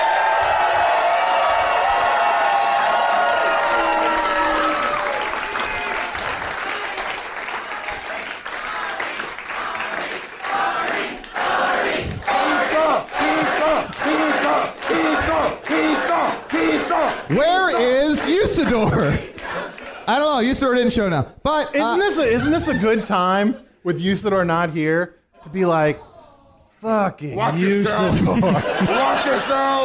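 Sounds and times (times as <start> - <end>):
audience applause: 0.0 - 20.8
laughter: 16.7 - 19.7, 22.0 - 23.7, 27.5 - 29.8
speech: 20.6 - 21.2, 22.2 - 26.1, 26.8 - 29.8.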